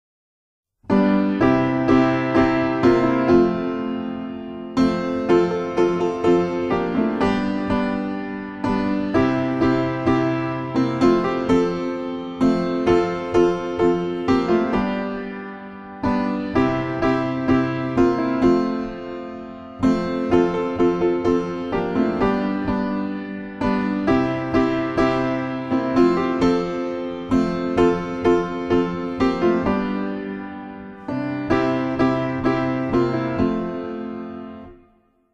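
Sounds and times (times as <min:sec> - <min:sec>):
piano: 0:00.8 - 0:35.3.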